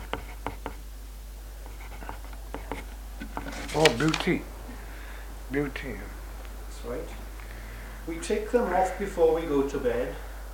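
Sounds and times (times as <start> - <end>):
pen scratching on paper in handwriting: 0.0 - 0.8, 1.6 - 4.0
constant low hum: 0.0 - 10.5
speech: 3.8 - 4.5, 5.5 - 6.2, 6.8 - 7.2, 8.0 - 10.3.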